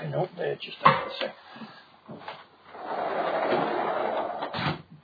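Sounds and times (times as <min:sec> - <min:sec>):
speech: 0:00.1 - 0:03.8
patio door being shut: 0:03.3 - 0:04.8.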